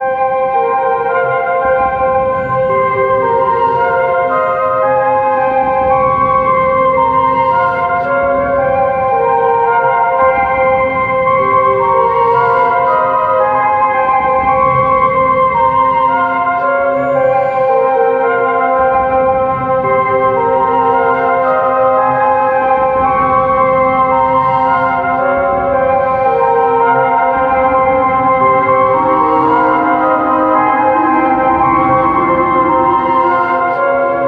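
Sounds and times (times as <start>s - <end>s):
scary music loop: 0.0s - 34.2s.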